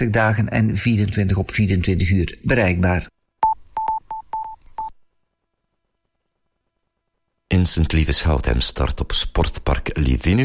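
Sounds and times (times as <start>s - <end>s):
speech: 0.0s - 3.2s, 7.5s - 10.4s
telephone keypad tones: 3.4s - 5.0s.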